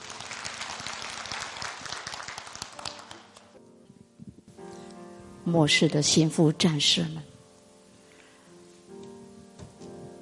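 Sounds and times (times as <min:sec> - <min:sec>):
applause: 0:00.0 - 0:03.6
speech: 0:05.5 - 0:07.3.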